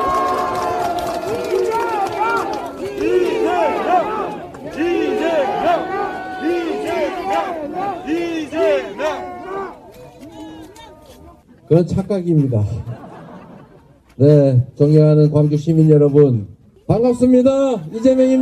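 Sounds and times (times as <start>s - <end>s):
crowd clapping: 0.0s - 9.6s
large crowd roaring and cheering at an outdoor rally: 0.0s - 11.3s
speech: 11.7s - 13.0s, 14.2s - 18.4s
laughter: 12.5s - 14.2s.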